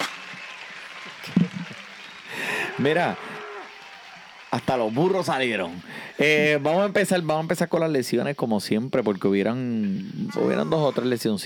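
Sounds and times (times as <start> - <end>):
applause sound effect: 0.0 - 5.8
speech: 2.8 - 3.3, 4.7 - 11.4.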